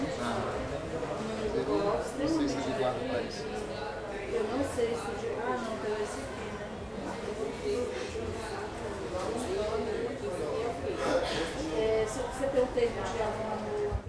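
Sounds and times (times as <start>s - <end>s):
murmur of voices at a market: 0.0s - 14.0s.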